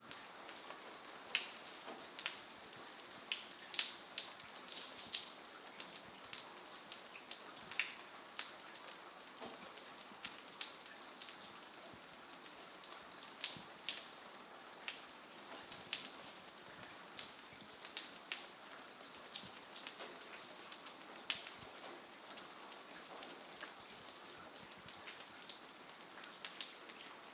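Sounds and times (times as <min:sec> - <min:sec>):
night rain in a village: 0:00.0 - 0:27.3
water dripping in a courtyard: 0:00.1 - 0:27.3.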